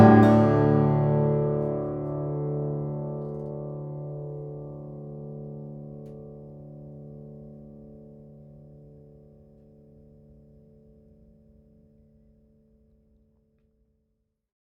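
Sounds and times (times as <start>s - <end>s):
1930 Martin 00-40H flattop steel string guitar of Brazilian rosewood and Adirondack spruce: 0.0s - 5.8s.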